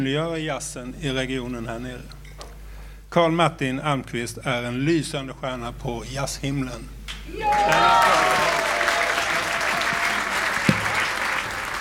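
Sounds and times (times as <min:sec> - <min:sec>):
speech: 0:00.0 - 0:02.2, 0:03.1 - 0:08.6
audience applause: 0:07.3 - 0:11.7
audience cheering with whoops: 0:07.3 - 0:11.7.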